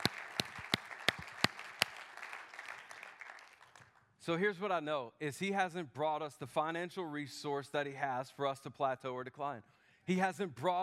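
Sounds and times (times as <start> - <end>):
audience applause: 0.0 - 3.8
loud sharp claps: 0.0 - 4.0
speech: 4.2 - 10.8.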